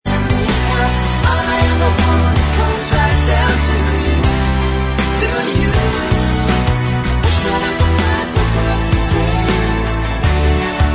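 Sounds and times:
backing vocals: 0.1 - 10.0.

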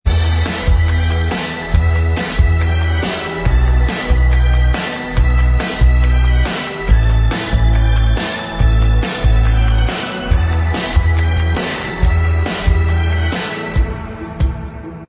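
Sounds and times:
instrumental backing track: 0.1 - 15.0.

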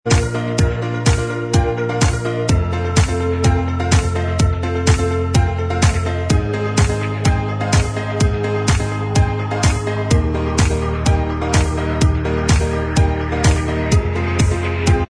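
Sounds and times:
instrumental backing track: 0.0 - 15.0.

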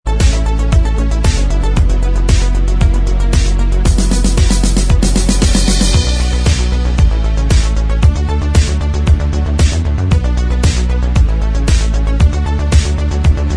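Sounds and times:
instrumental music: 0.1 - 13.5.

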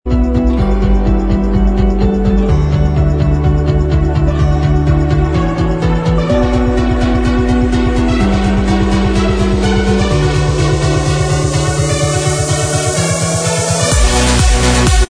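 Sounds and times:
instrumental remix track: 0.1 - 15.0.

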